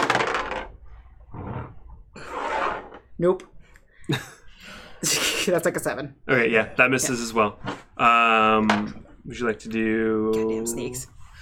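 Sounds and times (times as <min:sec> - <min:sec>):
dice rolling on table: 0:00.0 - 0:03.1
speech: 0:03.2 - 0:03.5, 0:04.1 - 0:04.4, 0:05.0 - 0:11.2.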